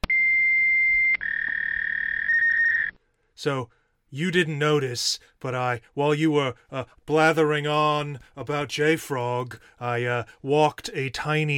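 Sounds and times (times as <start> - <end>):
lightning sound effect electronic tone: 0.0 - 3.0
speech: 3.4 - 11.5.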